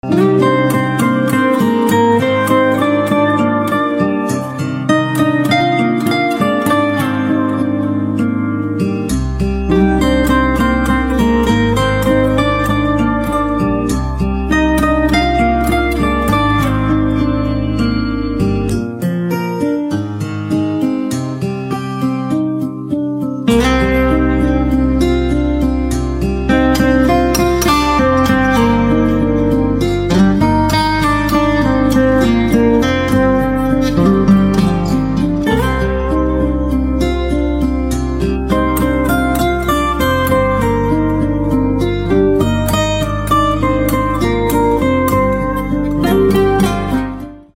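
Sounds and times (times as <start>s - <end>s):
guitar: 0.0s - 47.5s.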